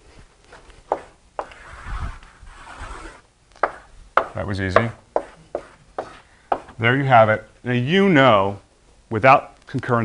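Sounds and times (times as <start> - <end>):
scratchy rubbing strokes drawing a diagram: 0.9 - 3.2, 5.2 - 6.7
sharp taps: 3.6 - 6.7
speech: 4.4 - 5.0, 6.8 - 10.0.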